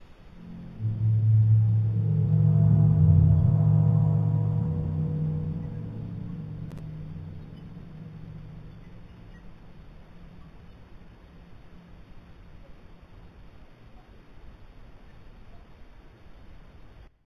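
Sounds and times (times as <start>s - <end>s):
signal sound: 0.3s - 10.4s.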